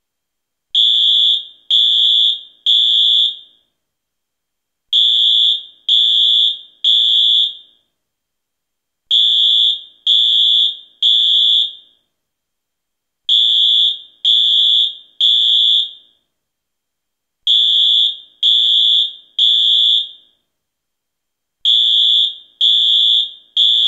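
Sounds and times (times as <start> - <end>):
fire alarm: 0.8 - 3.7, 4.9 - 7.9, 9.1 - 12.1, 13.3 - 16.3, 17.5 - 20.5, 21.6 - 23.8.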